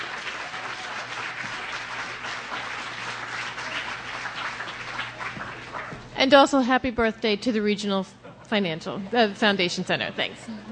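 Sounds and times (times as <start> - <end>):
crowd applause: 0.0 - 6.1
speech: 6.2 - 10.7.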